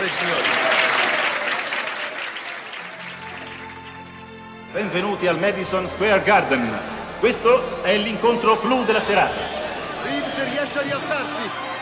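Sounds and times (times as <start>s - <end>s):
speech: 0.0s - 0.6s, 4.7s - 11.7s
audience applause: 0.0s - 4.5s, 7.9s - 11.8s.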